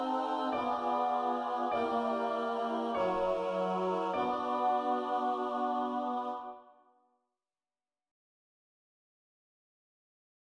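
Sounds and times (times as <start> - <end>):
sopranos singing: 0.0 - 6.7.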